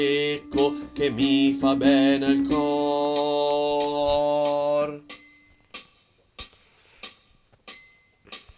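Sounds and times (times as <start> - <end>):
contralto voices singing: 0.0 - 5.1.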